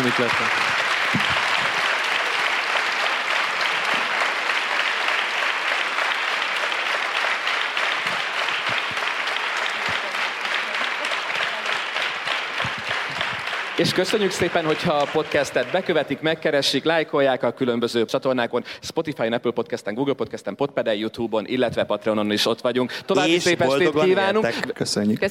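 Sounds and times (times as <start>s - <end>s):
audience applause: 0.0s - 16.6s
speech: 0.1s - 1.5s, 13.8s - 25.2s.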